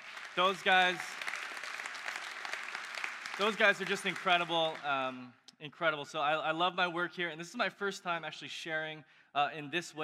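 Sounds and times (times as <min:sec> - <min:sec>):
audience applause: 0:00.0 - 0:04.9
speech: 0:00.4 - 0:01.2, 0:03.4 - 0:10.0.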